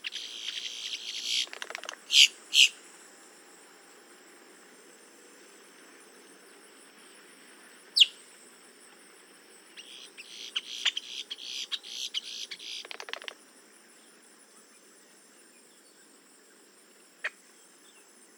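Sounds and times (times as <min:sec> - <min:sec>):
boat-tailed grackle Quiscalus major calls: 0:00.0 - 0:02.8, 0:09.8 - 0:13.4.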